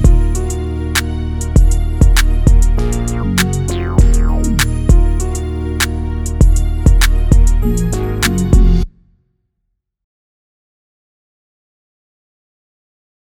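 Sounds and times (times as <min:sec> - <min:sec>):
instrumental music: 0:00.0 - 0:09.0.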